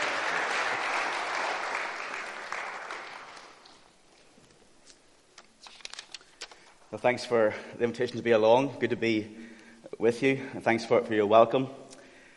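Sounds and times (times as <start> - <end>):
audience applause: 0.0 - 3.9
speech: 6.9 - 11.8.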